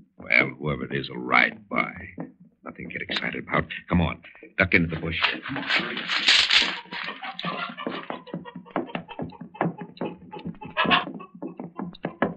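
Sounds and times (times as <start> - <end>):
speech: 0.2 - 6.8
laughter: 2.7 - 12.3
flapping rustles: 5.1 - 8.2
chicken squawking: 5.2 - 12.2.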